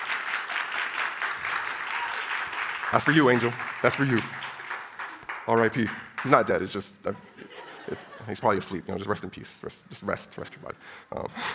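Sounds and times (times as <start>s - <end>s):
round of applause: 0.0s - 6.9s
speech: 2.9s - 4.5s, 5.5s - 7.3s, 7.9s - 11.5s
laughter: 7.0s - 9.0s.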